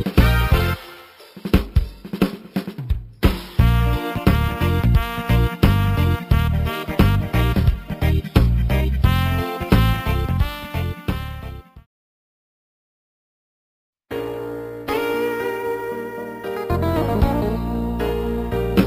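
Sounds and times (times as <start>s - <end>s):
brass instrument samples: 0.0s - 1.5s, 3.5s - 11.8s, 14.9s - 18.8s.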